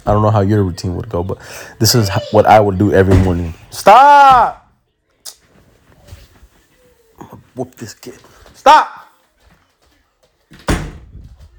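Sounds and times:
speech: 0:00.0 - 0:04.6, 0:07.6 - 0:09.0
door shut with a heavy thud: 0:03.0 - 0:03.6, 0:10.5 - 0:11.3
door rattling and knocking as it is secured: 0:10.5 - 0:11.5.

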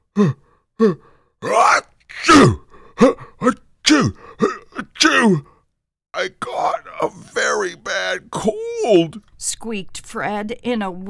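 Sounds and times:
speech: 0:00.2 - 0:01.7, 0:02.3 - 0:04.1, 0:08.1 - 0:11.0
person acting out a fit of sneezing: 0:00.2 - 0:05.5, 0:06.2 - 0:09.2.

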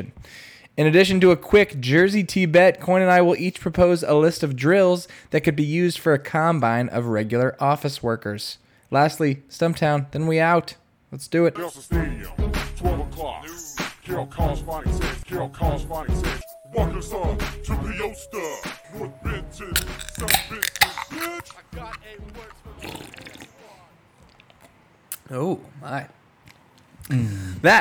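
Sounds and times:
speech: 0:00.0 - 0:23.4, 0:25.3 - 0:26.2, 0:27.1 - 0:27.8
beer cans being cracked open: 0:19.8 - 0:25.3.

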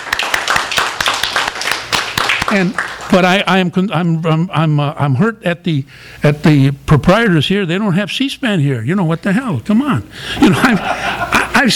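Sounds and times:
clapping: 0:00.0 - 0:03.2
speech: 0:02.5 - 0:11.7
laughter: 0:10.3 - 0:11.7.

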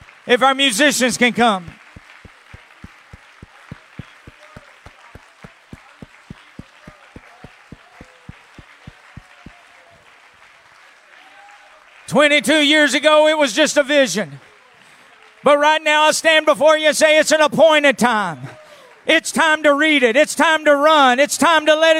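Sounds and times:
crowd murmuring: 0:00.0 - 0:10.1
audience clapping hands in a rhythmic beat: 0:00.0 - 0:12.2
speech: 0:00.2 - 0:01.8, 0:12.2 - 0:14.5, 0:15.4 - 0:21.9.

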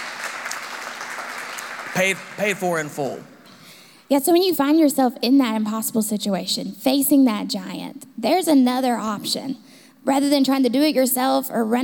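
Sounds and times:
audience hand clapping: 0:00.0 - 0:03.3
speech: 0:02.0 - 0:03.3, 0:04.1 - 0:11.8.

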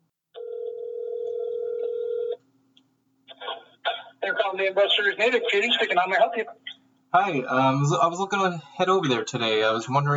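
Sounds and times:
phone ringback tone on an outgoing call: 0:00.4 - 0:02.4
speech: 0:04.3 - 0:10.1.

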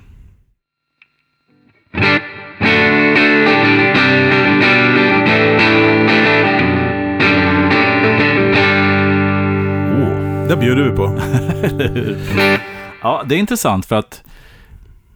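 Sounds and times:
electric guitar through a gold foil pickup strumming chords: 0:01.8 - 0:13.1
laughter: 0:09.6 - 0:13.2
speech: 0:10.6 - 0:14.3.

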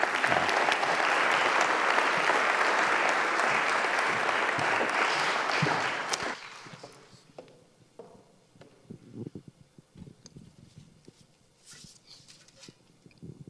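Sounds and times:
audience applause welcoming guests from Senegal: 0:00.0 - 0:07.0.

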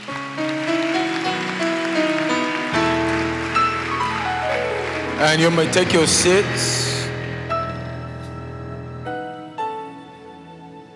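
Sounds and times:
audience clapping: 0:00.0 - 0:08.0
sustained organ or keyboard chords: 0:00.0 - 0:10.9
speech: 0:05.2 - 0:06.8.

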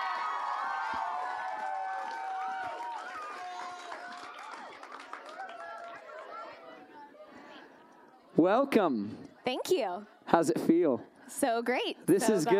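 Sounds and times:
crowd cheering and whooping at a live evening event: 0:00.0 - 0:06.6
speech: 0:08.4 - 0:12.5.

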